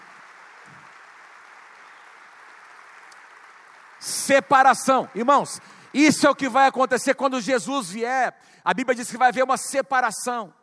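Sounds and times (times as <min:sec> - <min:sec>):
audience applause: 0:00.0 - 0:06.6
speech: 0:04.0 - 0:10.6.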